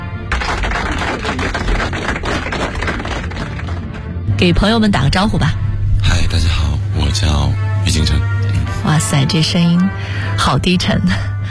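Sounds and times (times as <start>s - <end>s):
crowd applause: 0.3s - 4.2s
speech: 4.4s - 11.3s.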